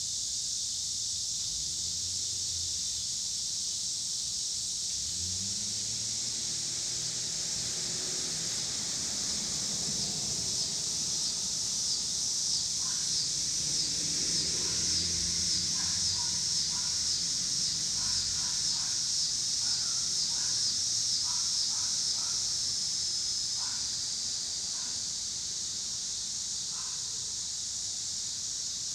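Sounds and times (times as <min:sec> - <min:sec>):
cicadas buzzing: 0:00.0 - 0:28.9
cars passing: 0:04.8 - 0:25.0.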